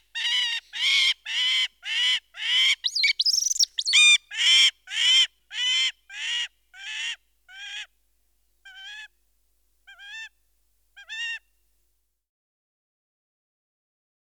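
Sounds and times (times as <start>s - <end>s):
goshawk call: 0.1s - 7.9s.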